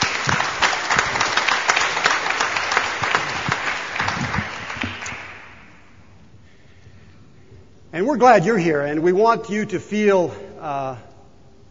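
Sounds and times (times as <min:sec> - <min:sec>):
church congregation at First Baptist Church applauding: 0:00.0 - 0:06.0
speech: 0:08.0 - 0:11.1.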